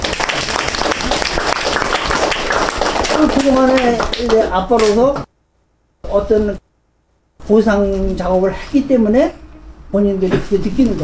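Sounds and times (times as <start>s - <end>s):
applause: 0.0s - 4.9s
speech: 3.2s - 5.3s, 6.1s - 6.6s, 7.4s - 11.0s.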